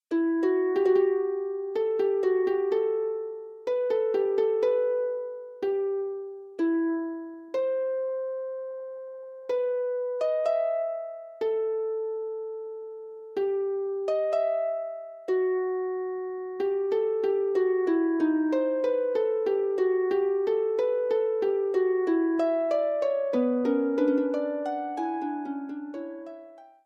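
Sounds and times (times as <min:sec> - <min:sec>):
harp playing a fugue: 0:00.0 - 0:26.8.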